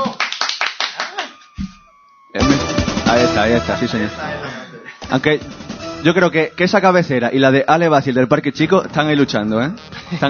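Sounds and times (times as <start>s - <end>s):
applause, hands clapping: 0.0s - 1.8s
speech: 3.4s - 4.4s, 5.1s - 10.2s.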